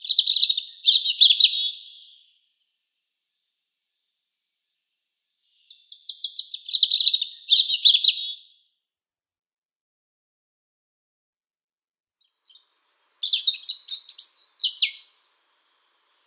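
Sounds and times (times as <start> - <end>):
European robin singing: 0.0 - 2.4, 5.4 - 8.6, 12.2 - 16.2.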